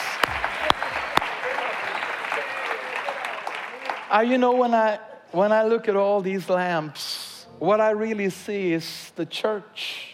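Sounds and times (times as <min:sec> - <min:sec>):
audience applause: 0:00.0 - 0:04.2
speech: 0:04.1 - 0:10.0.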